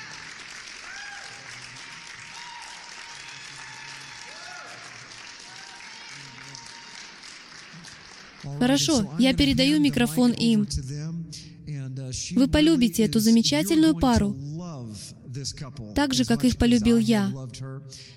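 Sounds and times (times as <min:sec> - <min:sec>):
standing ovation applause from a large crowd: 0:00.0 - 0:09.5
whoops and cheers: 0:00.8 - 0:07.1
speech: 0:08.4 - 0:11.4, 0:12.1 - 0:14.5, 0:15.4 - 0:18.1.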